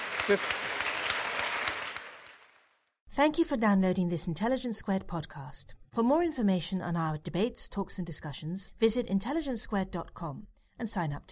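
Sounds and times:
audience clapping at the close of a debate event: 0:00.0 - 0:02.9
speech: 0:00.3 - 0:00.7, 0:03.2 - 0:11.2.

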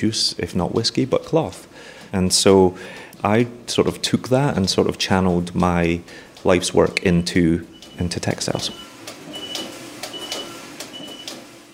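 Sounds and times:
speech: 0:00.0 - 0:08.9
knitting machine alarm signalling knitting ready: 0:06.9 - 0:11.7.

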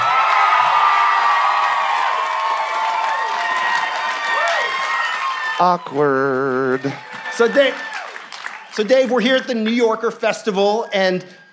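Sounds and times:
whoops and shouts: 0:00.0 - 0:08.6
crowd cheering and applauding: 0:00.0 - 0:11.5
speech: 0:05.6 - 0:07.9, 0:08.8 - 0:11.4.

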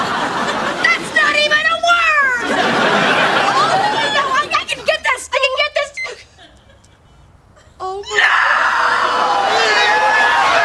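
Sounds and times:
laughter: 0:00.0 - 0:07.8
woman screaming: 0:03.6 - 0:04.6, 0:07.9 - 0:10.6.

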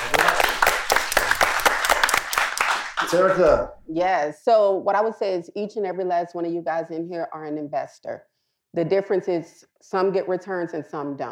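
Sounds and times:
crowd clapping: 0:00.0 - 0:03.6
speech: 0:03.1 - 0:11.2.

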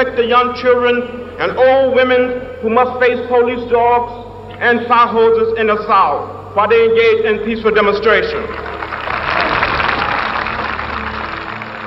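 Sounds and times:
speech: 0:00.0 - 0:08.7
crowd clapping in approval: 0:08.3 - 0:11.8.

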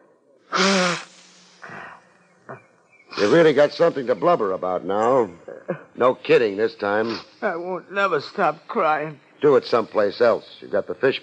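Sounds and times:
nose blowing into a handkerchief: 0:00.5 - 0:01.9, 0:03.1 - 0:03.5
speech: 0:03.2 - 0:11.2.

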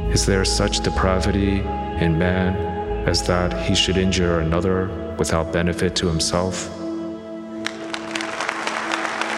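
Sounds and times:
speech: 0:00.1 - 0:06.8
audience applause: 0:07.6 - 0:09.3.

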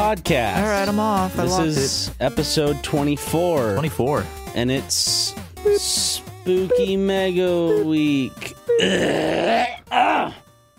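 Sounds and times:
speech: 0:00.1 - 0:10.4
person clearing throat: 0:08.7 - 0:10.4.

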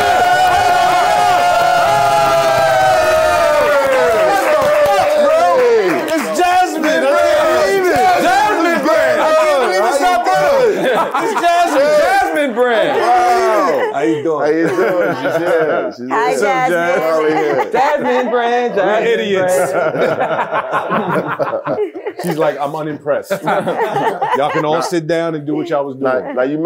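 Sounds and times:
scattered claps: 0:00.0 - 0:08.4
excited cheering and whoops from several voices: 0:00.0 - 0:14.2
laughter: 0:00.0 - 0:26.6
speech: 0:17.7 - 0:26.6.

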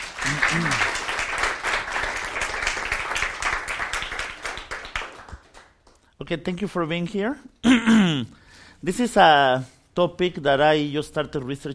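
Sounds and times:
audience applause: 0:00.0 - 0:05.9
speech: 0:06.3 - 0:11.7.

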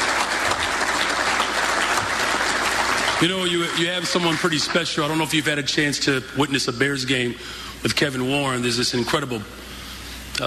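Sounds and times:
audience applause: 0:00.0 - 0:05.4
speech: 0:03.2 - 0:09.6.

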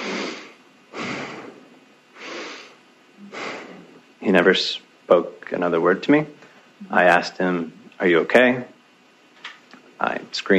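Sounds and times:
voice imitating heavy raspy breathing over the phone: 0:00.0 - 0:04.0
speech: 0:04.3 - 0:08.7, 0:10.0 - 0:10.5.

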